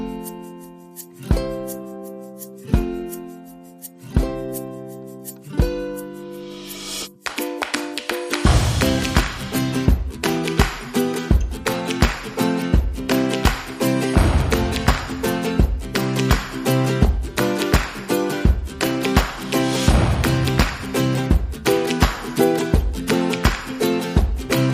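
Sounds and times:
guitars: 0.0s - 24.7s
ukulele rhythm: 0.0s - 24.7s
drums: 4.2s - 4.6s, 6.6s - 24.7s.

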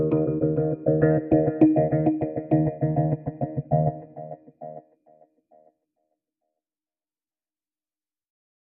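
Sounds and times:
music bed: 0.0s - 4.8s.

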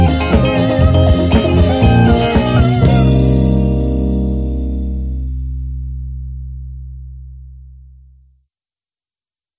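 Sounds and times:
instrumental disco music: 0.0s - 5.1s.

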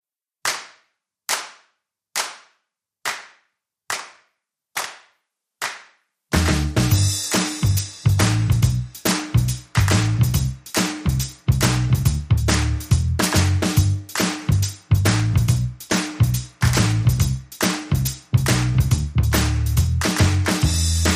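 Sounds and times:
bass: 6.3s - 21.1s
drums: 6.3s - 21.1s.

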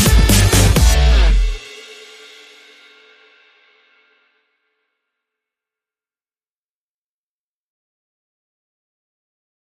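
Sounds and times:
guitar music: 0.0s - 1.6s.

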